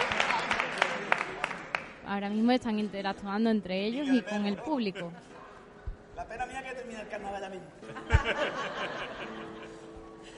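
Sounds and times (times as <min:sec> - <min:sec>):
audience applause: 0:00.0 - 0:02.0
speech: 0:02.2 - 0:05.3, 0:06.2 - 0:09.4
laughter: 0:07.8 - 0:10.3.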